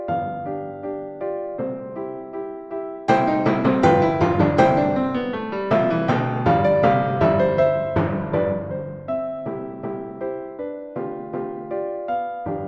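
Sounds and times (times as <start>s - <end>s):
piano: 0.0s - 12.6s
timbales: 3.1s - 10.0s.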